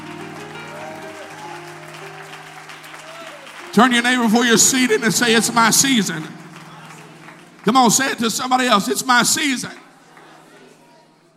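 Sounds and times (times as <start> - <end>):
sustained musical tones humming: 0.0 - 9.1
audience hand clapping: 0.0 - 11.3
speech: 3.8 - 6.4, 7.6 - 9.8.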